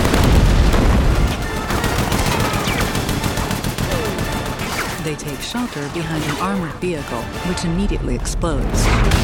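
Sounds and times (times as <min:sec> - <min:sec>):
heavy gunfire from a large gun: 0:00.0 - 0:05.1
speech: 0:05.2 - 0:09.2.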